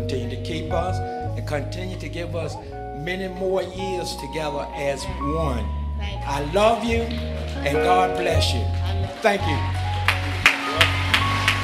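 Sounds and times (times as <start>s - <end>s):
speech: 0.0s - 9.9s
audience clapping: 6.8s - 11.6s.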